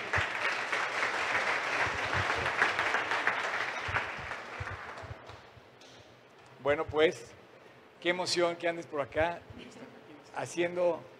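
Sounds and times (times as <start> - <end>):
audience applause: 0.0 - 5.4
speech: 6.7 - 7.4, 8.0 - 9.8, 10.4 - 11.1.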